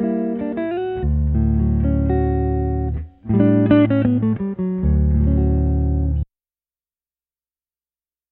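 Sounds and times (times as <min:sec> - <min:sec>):
electric guitar test: 0:00.0 - 0:06.2.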